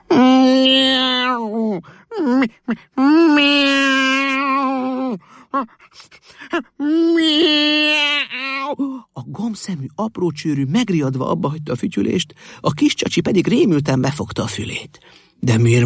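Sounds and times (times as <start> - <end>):
human voice imitating cat meowing: 0.0 - 5.7, 6.8 - 8.8
gasping breaths: 1.8 - 3.0, 5.1 - 6.8
speech: 2.4 - 3.7, 5.5 - 7.9, 9.5 - 15.8.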